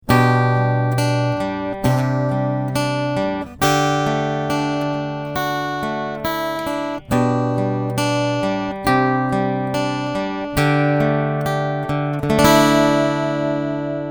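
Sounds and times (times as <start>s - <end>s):
guitar picking: 0.0s - 14.0s.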